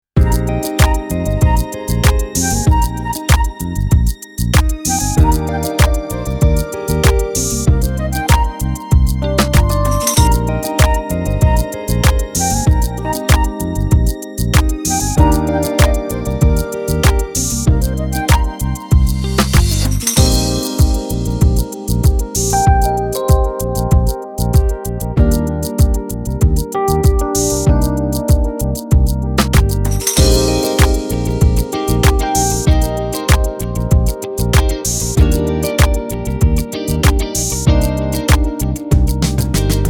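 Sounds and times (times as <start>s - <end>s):
step beat: 0.2s - 39.8s.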